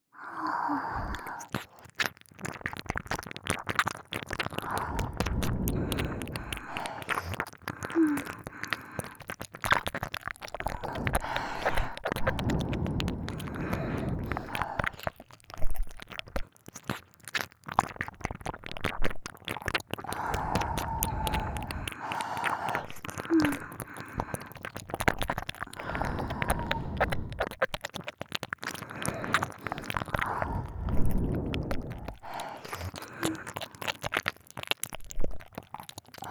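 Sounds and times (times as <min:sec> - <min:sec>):
breathing: 0:00.0 - 0:02.1, 0:04.5 - 0:09.4, 0:10.6 - 0:15.2, 0:20.0 - 0:27.7, 0:28.7 - 0:34.2
ear licking: 0:00.6 - 0:36.2.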